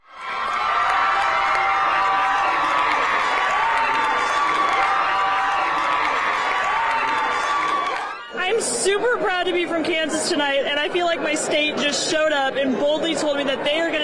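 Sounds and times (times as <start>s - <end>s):
crowd of Kansans cheering after voters rejected an abortion-ban amendment: 0.0s - 8.4s
people shouting: 0.3s - 8.3s
speech: 9.1s - 14.0s.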